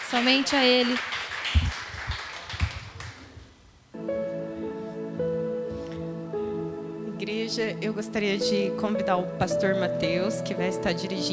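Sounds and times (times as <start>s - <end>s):
audience clapping: 0.0s - 3.4s
speech: 0.1s - 1.6s, 7.3s - 11.3s
sustained keyboard chords: 4.0s - 11.3s.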